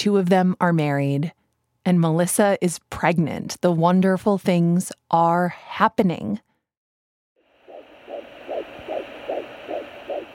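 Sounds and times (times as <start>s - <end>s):
speech: 0.0s - 6.5s
constant hiss: 7.5s - 10.3s
fetal heartbeat on ultrasound monitor: 7.6s - 10.3s.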